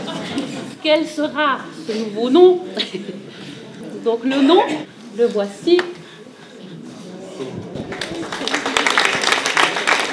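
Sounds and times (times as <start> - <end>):
murmur of voices: 0.0 - 10.1
speech: 0.8 - 3.2, 4.0 - 6.0
audience applause: 7.8 - 10.1.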